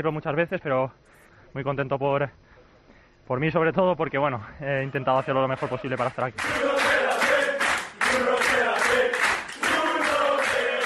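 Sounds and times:
speech: 0.0s - 2.4s, 3.3s - 7.1s
teammates cheering in locker room: 4.8s - 10.8s
teammates applauding in locker room: 5.3s - 10.8s.

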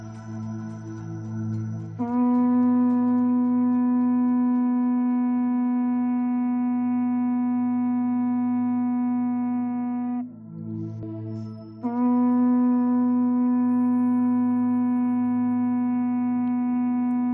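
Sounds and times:
low drone: 0.0s - 17.3s
traditional horns sounding an assembly call: 1.9s - 10.2s, 11.8s - 17.3s.

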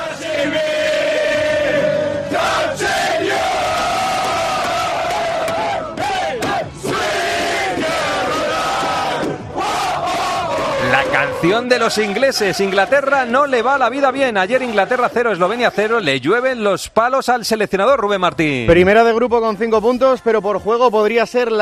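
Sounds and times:
Austrian fans celebrating inside a bus: 0.0s - 16.3s
speech: 11.2s - 21.6s.

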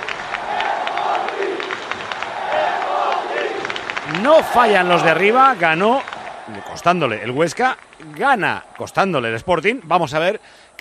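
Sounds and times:
football crowd chanting in a stadium: 0.0s - 6.8s
speech: 4.2s - 10.7s.

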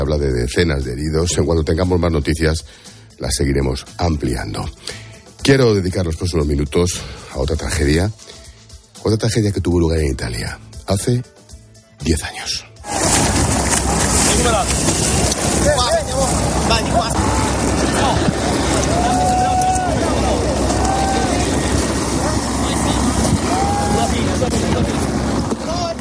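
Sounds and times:
speech: 0.0s - 8.4s, 9.0s - 11.4s, 12.0s - 12.7s, 14.4s - 16.1s
recording of a shipwreck at sea off Lampedusa: 12.8s - 25.9s.

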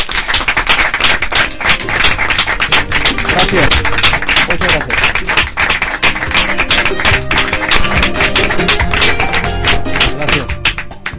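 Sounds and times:
audience applause: 0.0s - 11.1s
speech: 3.5s - 3.9s.

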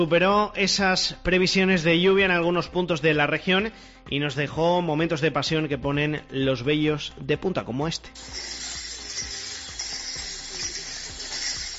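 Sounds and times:
speech: 0.0s - 8.8s
chains of penitents clinking during procession: 8.2s - 11.7s.

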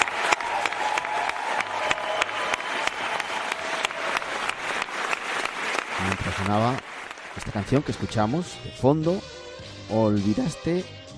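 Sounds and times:
colleagues applauding: 0.0s - 8.6s
speech: 6.3s - 6.8s, 7.4s - 11.0s.

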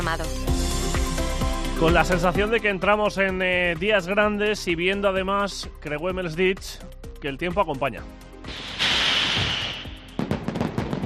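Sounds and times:
speech: 0.1s - 0.6s, 1.8s - 8.7s
mascletà hissing roar: 8.5s - 10.1s
mascletà firecracker barrage by Pirotecnia Tomás at Valencia City Hall: 8.5s - 11.0s.

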